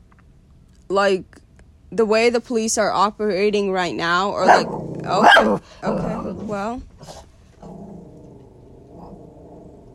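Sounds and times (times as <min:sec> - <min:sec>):
speech: 0:00.9 - 0:07.3
dog growling: 0:04.4 - 0:09.9.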